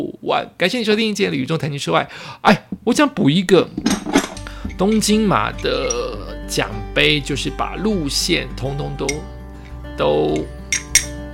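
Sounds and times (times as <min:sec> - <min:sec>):
speech: 0:00.0 - 0:04.2, 0:04.8 - 0:09.4, 0:10.0 - 0:10.8
metal marathon medal clinking: 0:03.8 - 0:06.2, 0:09.0 - 0:09.3, 0:10.3 - 0:11.2.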